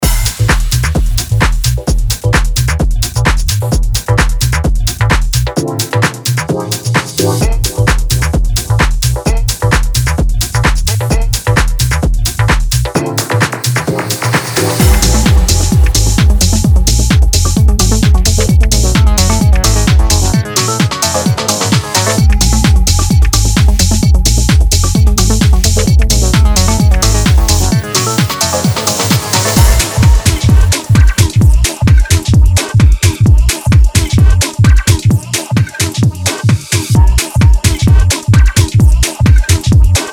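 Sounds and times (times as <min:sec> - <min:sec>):
minimal deep tech music: 0:00.0 - 0:35.3, 0:37.0 - 0:40.0.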